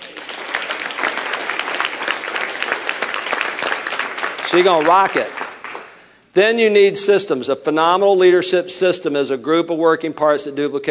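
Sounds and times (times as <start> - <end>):
crowd applauding: 0.0 - 6.0
speech: 4.5 - 5.4, 6.4 - 10.8.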